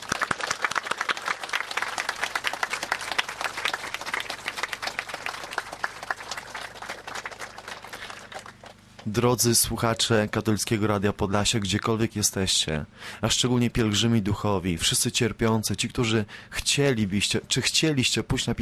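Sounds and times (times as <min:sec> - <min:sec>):
audience applause: 0:00.0 - 0:09.1
speech: 0:09.1 - 0:18.6.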